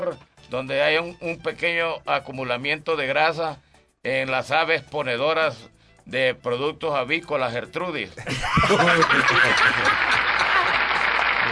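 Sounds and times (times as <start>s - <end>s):
speech: 0.1s - 10.2s
laughter: 8.2s - 11.5s
applause: 8.9s - 11.5s.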